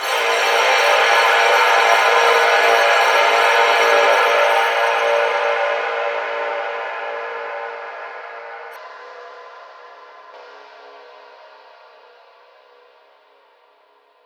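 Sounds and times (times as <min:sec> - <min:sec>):
mixed noise: 0:00.0 - 0:08.8.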